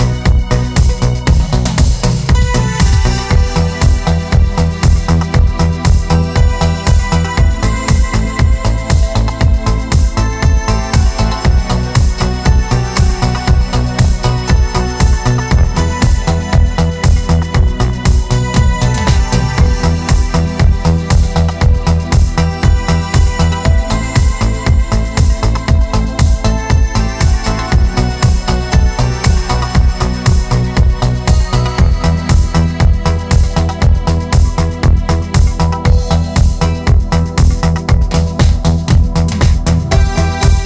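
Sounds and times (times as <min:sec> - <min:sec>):
keyboard modern beat: 0:00.0 - 0:40.6.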